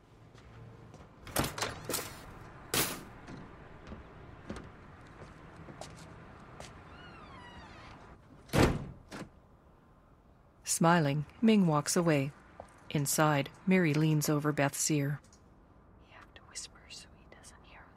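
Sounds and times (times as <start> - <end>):
RV door rattling clunk: 1.2 - 4.8
speech: 10.8 - 15.3.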